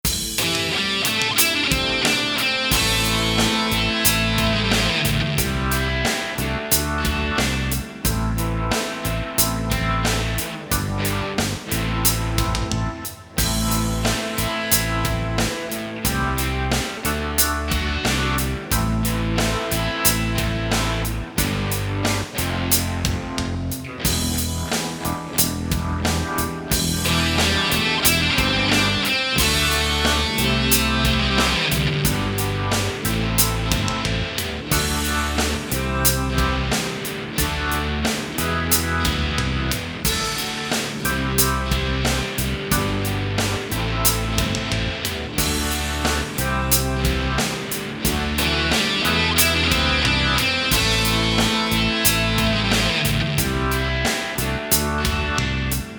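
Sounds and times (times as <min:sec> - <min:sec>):
rock backing track: 0:00.0 - 0:55.9.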